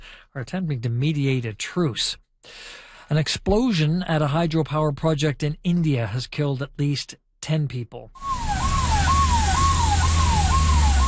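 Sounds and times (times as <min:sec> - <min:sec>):
speech: 0:00.4 - 0:08.4
ambulance siren racing to blast site: 0:08.2 - 0:11.0.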